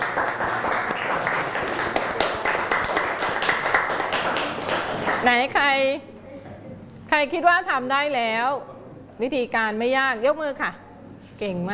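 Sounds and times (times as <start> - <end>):
group of students clapping: 0.0 - 5.4
speech: 5.2 - 6.1, 7.1 - 10.8, 11.4 - 11.7.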